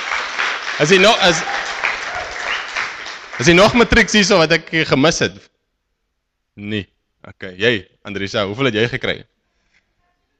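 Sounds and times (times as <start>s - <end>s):
audience applause: 0.0s - 4.1s
speech: 0.8s - 1.7s, 3.4s - 5.5s, 6.6s - 9.3s.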